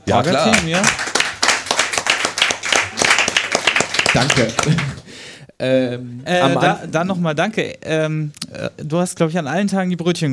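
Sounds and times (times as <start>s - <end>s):
small group clapping: 0.0s - 5.1s
speech: 0.1s - 1.1s, 4.1s - 5.0s, 5.6s - 10.3s
laughter: 4.2s - 5.0s.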